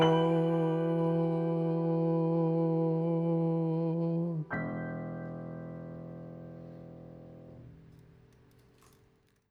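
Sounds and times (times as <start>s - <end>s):
person singing: 0.0s - 5.8s
piano: 0.0s - 9.4s.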